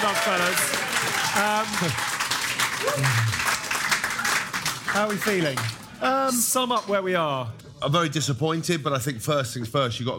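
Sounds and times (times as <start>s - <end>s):
audience applause: 0.0s - 6.0s
speech: 0.2s - 2.2s, 2.8s - 3.6s, 4.9s - 10.1s.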